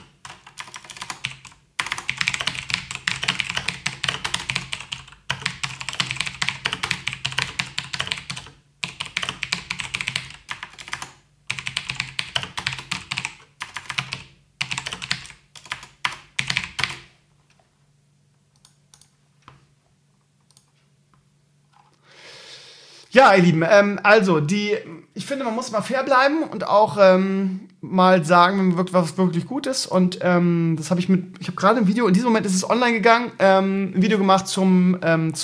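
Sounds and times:
rapid typing on a computer keyboard: 0:00.0 - 0:17.1, 0:18.5 - 0:19.6, 0:20.4 - 0:20.8
speech: 0:23.2 - 0:35.4.

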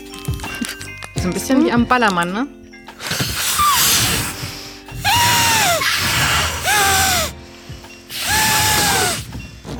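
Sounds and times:
speech: 0:01.2 - 0:02.6
condom being blown up like a balloon: 0:03.1 - 0:07.4, 0:08.1 - 0:09.3.

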